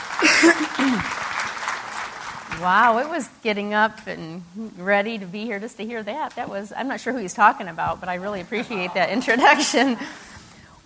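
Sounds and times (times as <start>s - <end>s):
audience clapping: 0.0s - 3.3s
speech: 0.2s - 1.2s, 2.6s - 10.3s.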